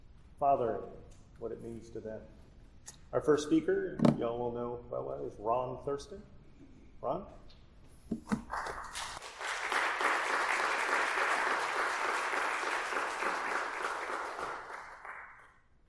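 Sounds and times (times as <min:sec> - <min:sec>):
speech: 0:00.4 - 0:02.4, 0:03.1 - 0:06.3, 0:07.0 - 0:07.4
crowd applause: 0:08.5 - 0:15.5.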